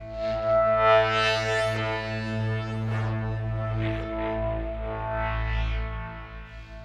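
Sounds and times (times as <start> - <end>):
space synth pad: 0.0 - 6.8.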